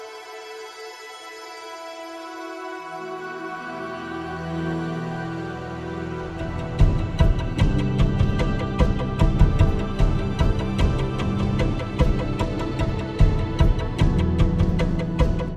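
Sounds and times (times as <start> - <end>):
dynamic music: 6.6 - 15.5.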